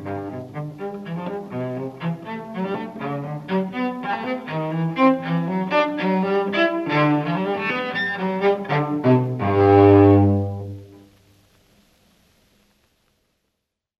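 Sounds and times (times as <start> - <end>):
unaccompanied solo cello piece: 0.0 - 11.1.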